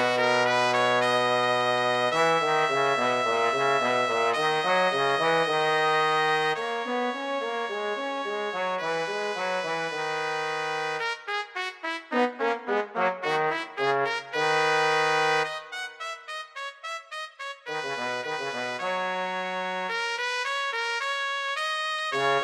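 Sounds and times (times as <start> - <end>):
trombone: 0.0 - 11.0, 11.7 - 15.7, 22.1 - 22.4
trumpet: 0.0 - 22.4.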